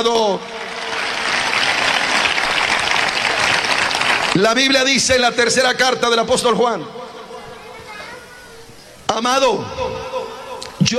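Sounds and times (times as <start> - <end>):
speech: 0.0 - 0.6, 4.4 - 7.0, 9.1 - 10.2
audience applause: 0.0 - 4.7.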